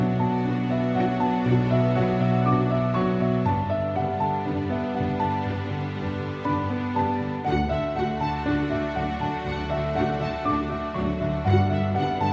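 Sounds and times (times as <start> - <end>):
light piano music: 0.0 - 12.3.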